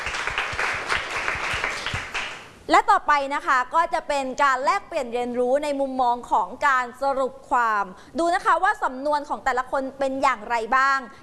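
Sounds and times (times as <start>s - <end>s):
small class audience applause: 0.0s - 2.5s
speech: 2.7s - 11.2s.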